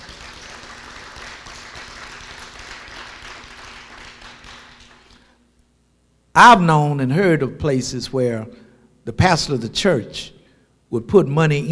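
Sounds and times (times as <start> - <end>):
audience clapping hands: 0.0 - 5.4
speech: 6.4 - 11.7.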